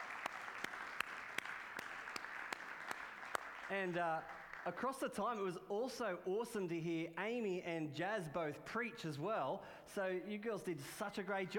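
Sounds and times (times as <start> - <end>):
audience round of applause: 0.0 - 4.8
speech: 3.7 - 11.5.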